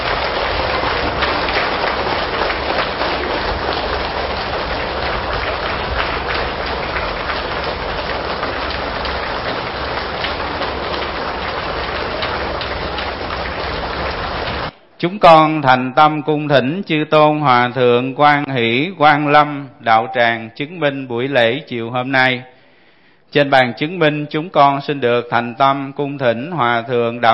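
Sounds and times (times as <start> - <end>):
audience applause welcoming monks: 0.0 - 14.7
speech: 15.0 - 22.5, 23.3 - 27.3.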